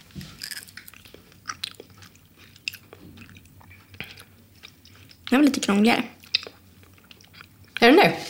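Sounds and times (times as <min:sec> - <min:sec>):
chewing dried fruit: 0:00.0 - 0:07.9
speech: 0:05.3 - 0:06.2.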